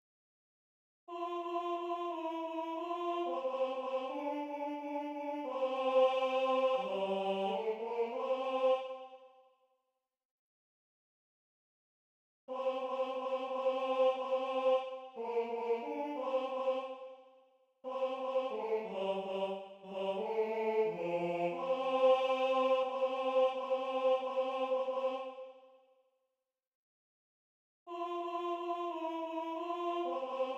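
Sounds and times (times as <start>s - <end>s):
tenor singing: 1.1s - 9.1s, 12.5s - 17.0s, 17.9s - 25.4s, 27.9s - 30.5s.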